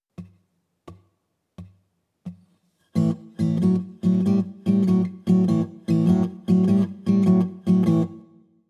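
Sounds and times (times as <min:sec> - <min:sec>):
blues rock guitar in open tunings: 0:02.9 - 0:08.3.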